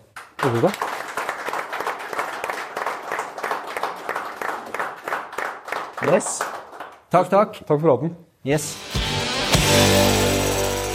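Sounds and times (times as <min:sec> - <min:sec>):
audience applauding: 0:00.0 - 0:07.1
speech: 0:00.4 - 0:00.9, 0:06.0 - 0:09.0, 0:09.7 - 0:10.4.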